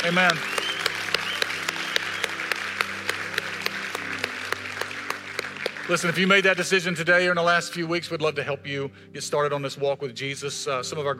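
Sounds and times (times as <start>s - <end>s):
speech: 0.0s - 0.5s, 5.9s - 11.1s
audience applauding: 0.0s - 6.9s.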